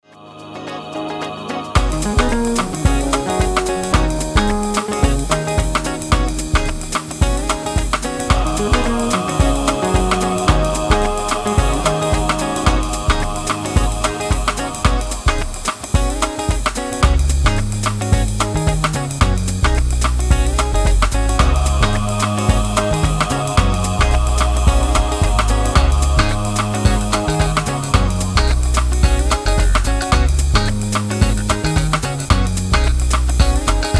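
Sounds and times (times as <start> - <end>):
instrumental music: 0.2 - 33.9.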